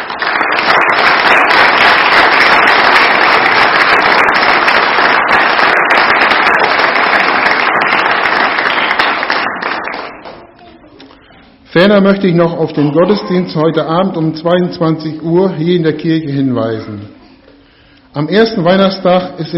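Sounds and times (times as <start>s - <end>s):
crowd applause: 0.0s - 10.6s
speech: 11.8s - 17.2s, 18.2s - 19.5s.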